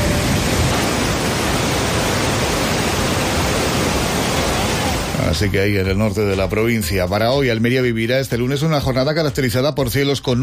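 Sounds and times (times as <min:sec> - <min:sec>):
rain falling: 0:00.0 - 0:05.4
speech: 0:05.3 - 0:10.4.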